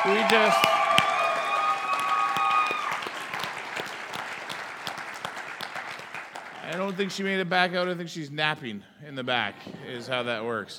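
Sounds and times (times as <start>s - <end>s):
speech: 0.0s - 0.8s, 6.8s - 10.7s
people clapping: 0.0s - 7.4s.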